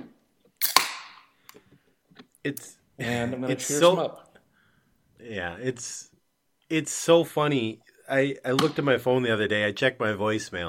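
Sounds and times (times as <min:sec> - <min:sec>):
beer being opened: 0:00.6 - 0:01.2
speech: 0:02.4 - 0:04.3, 0:05.2 - 0:06.1, 0:06.7 - 0:10.6.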